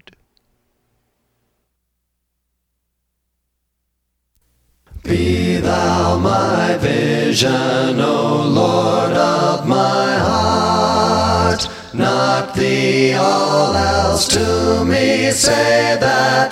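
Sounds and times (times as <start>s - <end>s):
English music: 4.9s - 16.4s.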